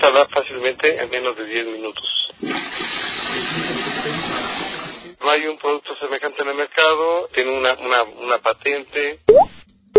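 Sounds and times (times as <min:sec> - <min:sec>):
speech: 0:00.2 - 0:03.9, 0:05.3 - 0:09.9
toilet flushing through a water-saving flush device: 0:02.4 - 0:05.2.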